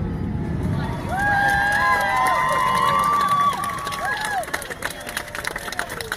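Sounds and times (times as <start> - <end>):
large crowd cheering and clapping after fireworks show: 0.2 - 6.1.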